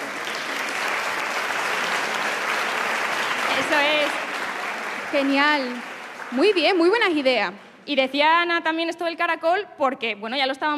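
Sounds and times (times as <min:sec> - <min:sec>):
audience applause: 0:00.0 - 0:07.4
speech: 0:03.6 - 0:04.2, 0:05.1 - 0:10.7.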